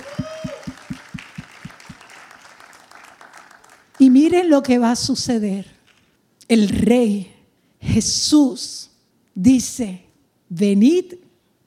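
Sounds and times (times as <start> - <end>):
audience applause: 0.0 - 4.1
speech: 4.2 - 5.8, 6.5 - 7.3, 7.9 - 11.6.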